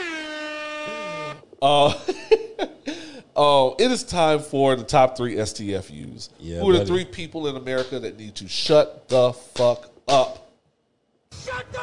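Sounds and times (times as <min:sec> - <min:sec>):
air horn sound effect: 0:00.0 - 0:01.5
speech: 0:01.6 - 0:02.8, 0:03.4 - 0:10.4.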